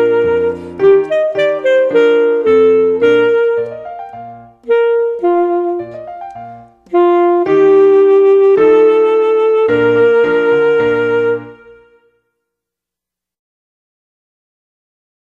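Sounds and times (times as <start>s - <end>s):
piano accompaniment at performance tempo: 0.0s - 12.1s
solo instrument at performance tempo: 0.0s - 12.3s.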